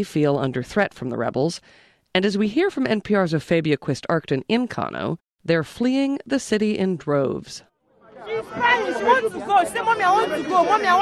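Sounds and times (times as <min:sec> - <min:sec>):
speech: 0:00.0 - 0:07.7, 0:08.3 - 0:11.0
crowd chatter at busy New Road bus station in Kano: 0:07.9 - 0:11.0.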